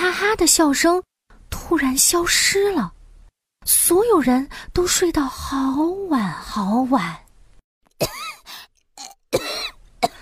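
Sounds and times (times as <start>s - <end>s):
speech: 0.3s - 1.1s, 1.7s - 3.0s, 3.6s - 7.2s
coughing: 8.0s - 10.1s.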